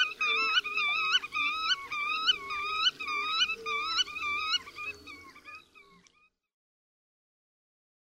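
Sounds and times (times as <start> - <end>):
black-tailed godwit calling: 0.0 - 6.4.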